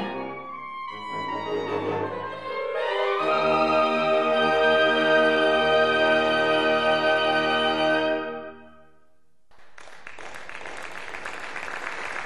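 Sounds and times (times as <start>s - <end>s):
saxophone ensemble: 0.0s - 8.9s.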